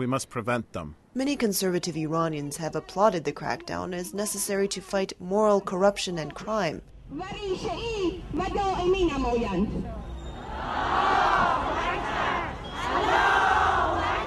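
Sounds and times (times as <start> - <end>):
speech: 0.0 - 11.1
large crowd chanting at a rally: 10.4 - 14.2.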